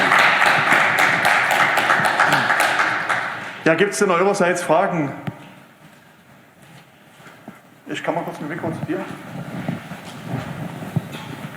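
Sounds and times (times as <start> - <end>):
audience applause: 0.0 - 3.7
speech: 3.7 - 5.3, 7.9 - 9.7.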